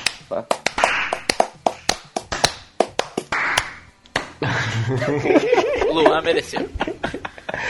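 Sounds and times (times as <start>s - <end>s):
hands clapping: 0.0s - 4.4s
speech: 0.3s - 0.6s, 4.4s - 7.6s
laughter: 4.4s - 7.6s.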